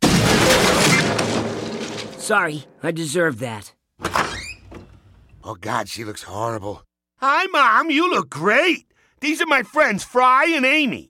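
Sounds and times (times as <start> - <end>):
piano smashed against a door: 0.0 - 2.5
speech: 2.3 - 3.8, 5.4 - 11.0.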